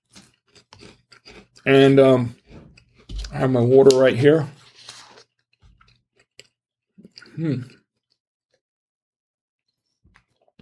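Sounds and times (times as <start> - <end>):
chewing a cracker: 0.0 - 4.0, 4.8 - 8.6
speech: 1.6 - 2.4, 3.3 - 4.6, 7.4 - 7.8.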